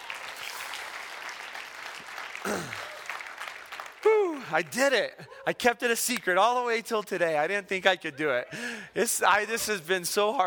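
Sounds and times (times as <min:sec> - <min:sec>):
audience clapping: 0:00.0 - 0:04.9
speech: 0:02.4 - 0:02.8, 0:04.5 - 0:10.4.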